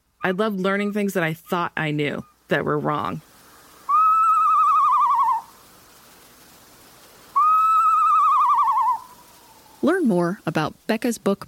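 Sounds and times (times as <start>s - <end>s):
speech: 0.2s - 3.3s, 10.1s - 11.4s
northern saw-whet owl call: 3.8s - 5.6s, 7.3s - 9.8s.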